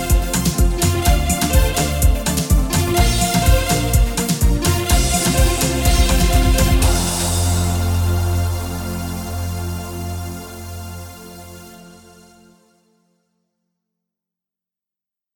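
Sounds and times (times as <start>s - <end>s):
Afro pop music: 0.0s - 12.0s.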